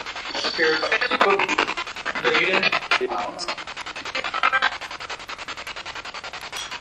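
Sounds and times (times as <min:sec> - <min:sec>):
spirit box radio sweep: 0:00.2 - 0:04.8.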